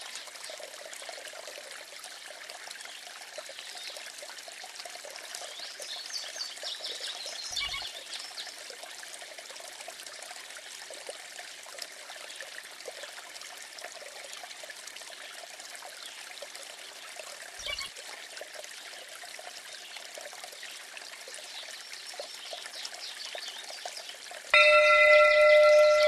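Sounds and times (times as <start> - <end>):
stream flowing: 0.0 - 26.0
bell ringing: 24.6 - 26.0.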